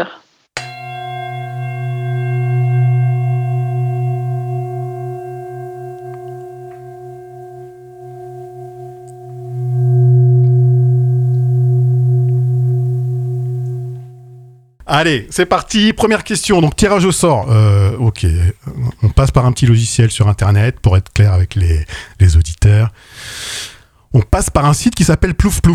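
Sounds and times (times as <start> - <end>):
singing bowl struck like a gong: 0.6 - 14.8
speech: 14.9 - 25.7.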